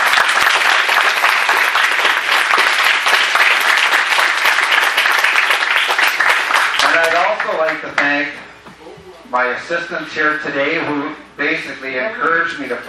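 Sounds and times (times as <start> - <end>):
audience applause: 0.0 - 7.8
speech: 7.8 - 8.4, 9.3 - 12.8.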